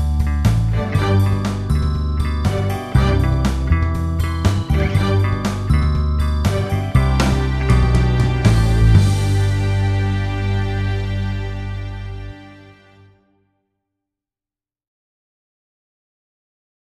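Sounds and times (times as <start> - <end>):
advertisement: 0.0 - 13.2.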